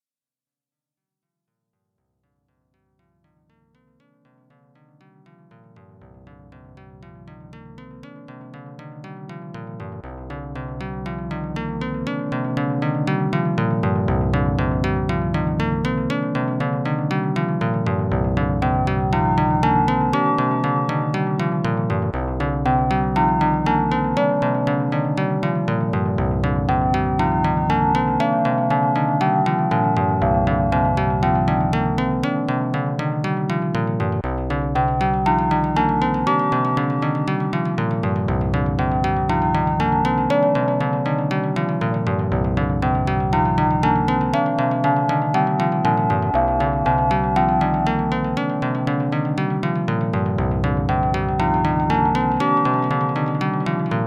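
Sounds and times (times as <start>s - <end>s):
out-of-tune music: 3.0s - 54.0s.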